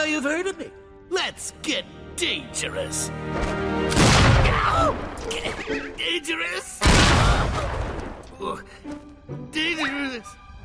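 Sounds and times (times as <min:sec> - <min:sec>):
speech: 0:00.0 - 0:07.8, 0:08.4 - 0:10.4
explosions: 0:04.0 - 0:05.2, 0:06.8 - 0:08.2.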